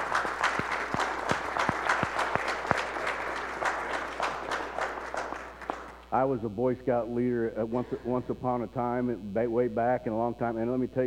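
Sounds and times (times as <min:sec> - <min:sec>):
round of applause: 0:00.0 - 0:06.1
speech: 0:06.2 - 0:11.0.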